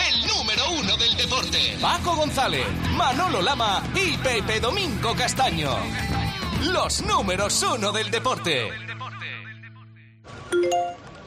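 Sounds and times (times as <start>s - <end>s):
speech: 0.9s - 8.9s
Securitas Direct alarm app notification chime: 10.6s - 11.1s.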